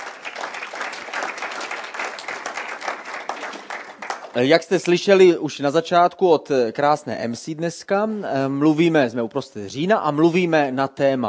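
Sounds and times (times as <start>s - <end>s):
audience applause: 0.0s - 5.0s
speech: 4.4s - 11.2s.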